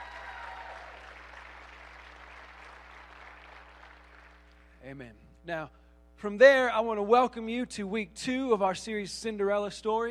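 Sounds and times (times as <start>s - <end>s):
church congregation applauding its lead pastor: 0.0s - 4.7s
speech: 4.8s - 10.0s.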